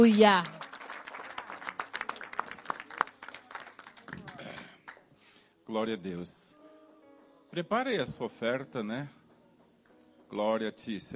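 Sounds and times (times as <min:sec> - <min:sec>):
speech: 0:00.0 - 0:00.6, 0:05.7 - 0:06.4, 0:07.5 - 0:09.2, 0:10.3 - 0:11.1
audience applause: 0:00.0 - 0:05.1.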